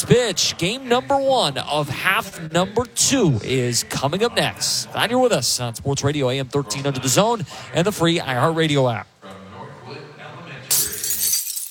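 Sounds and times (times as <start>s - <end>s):
speech: 0.1s - 9.1s
windshield glass cracking sound effect in a radio ad: 10.7s - 11.7s.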